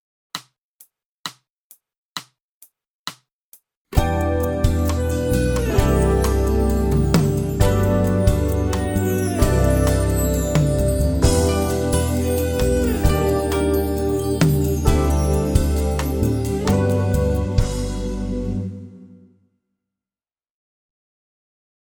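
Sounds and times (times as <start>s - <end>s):
strings in G major: 4.0s - 19.2s.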